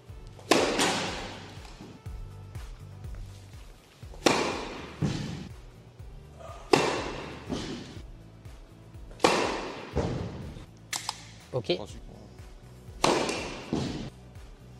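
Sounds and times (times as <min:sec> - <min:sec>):
low steady tonal background: 0:00.0 - 0:14.7
flat first tennis serve, racket hitting ball down the T: 0:00.3 - 0:02.0, 0:04.1 - 0:05.5, 0:06.4 - 0:08.0, 0:09.1 - 0:11.2, 0:13.0 - 0:14.1
speech: 0:11.6 - 0:12.1.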